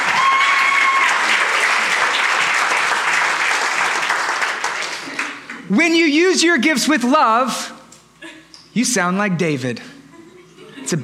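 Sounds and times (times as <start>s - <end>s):
crowd applause: 0.0s - 5.7s
speech: 5.7s - 7.7s, 8.8s - 9.9s.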